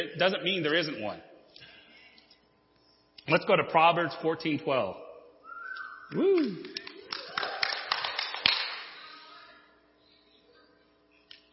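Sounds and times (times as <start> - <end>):
speech: 0.0 - 1.3, 3.3 - 5.0, 6.1 - 6.8
person clapping: 6.1 - 9.0.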